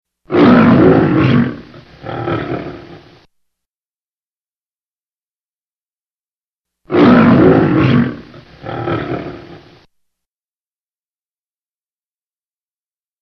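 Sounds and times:
lion roaring: 0.3s - 3.2s, 6.9s - 9.8s.

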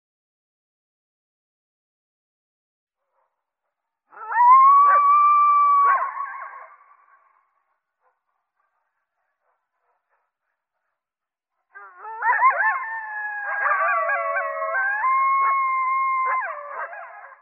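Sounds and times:
coyote howling and yelping: 4.1s - 7.0s, 11.8s - 17.4s.

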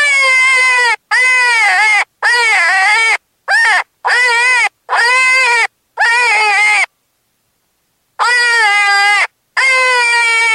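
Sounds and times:
cottontail rabbit distress screaming: 0.0s - 6.9s, 8.2s - 10.5s.

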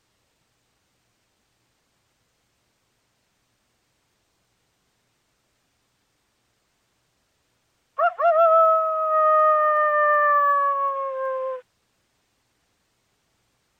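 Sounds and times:
coyote howling: 8.0s - 11.6s.

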